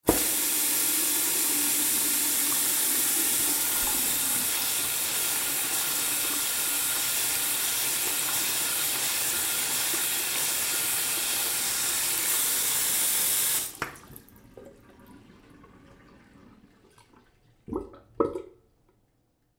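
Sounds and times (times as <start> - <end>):
hands washing at a public bathroom sink: 0.0 - 14.3.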